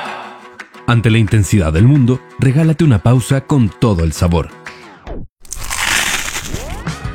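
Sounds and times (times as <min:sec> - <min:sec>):
speech: 0:00.9 - 0:04.7
crunchy bite into food: 0:05.4 - 0:06.9.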